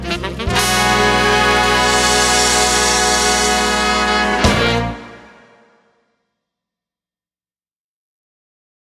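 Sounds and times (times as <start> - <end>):
rave swing band music: 0.0 - 5.8.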